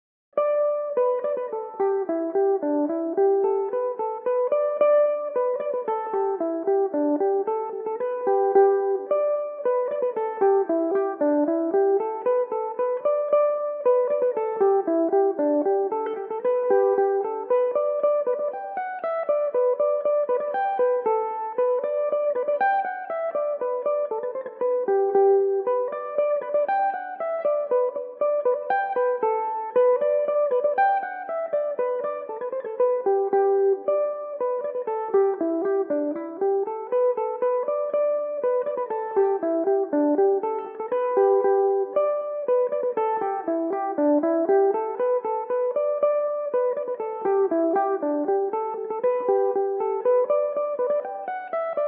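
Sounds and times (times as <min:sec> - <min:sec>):
Irish mandolin playing: 0:00.4 - 0:51.8.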